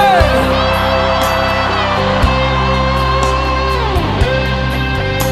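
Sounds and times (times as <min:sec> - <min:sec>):
audience shouting loudly: 0:00.0 - 0:05.2.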